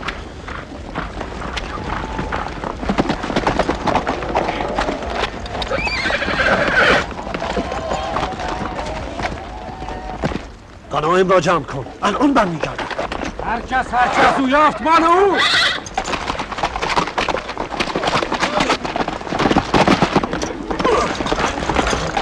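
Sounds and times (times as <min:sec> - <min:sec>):
horse hooves clip-clopping: 0:00.0 - 0:22.2
horse neighing: 0:05.6 - 0:07.1, 0:15.0 - 0:16.0
speech: 0:11.1 - 0:12.8, 0:13.5 - 0:15.6.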